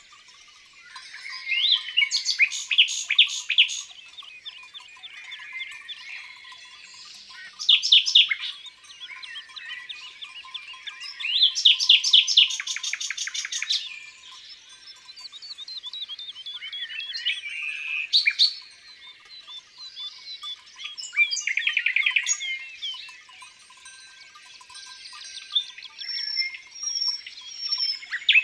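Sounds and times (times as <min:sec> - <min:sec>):
birds chirping in background: 0:00.0 - 0:28.4
common nightingale song: 0:00.0 - 0:28.4.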